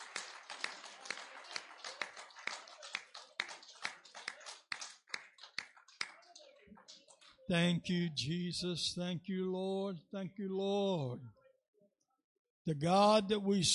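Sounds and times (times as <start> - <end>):
audience hand clapping: 0.0 - 8.0
speech: 7.5 - 11.4, 12.7 - 13.7.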